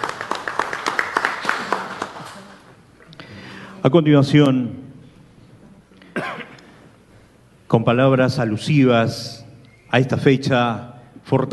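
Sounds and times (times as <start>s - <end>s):
crowd applause: 0.0s - 2.7s
speech: 3.8s - 4.8s, 7.7s - 11.5s.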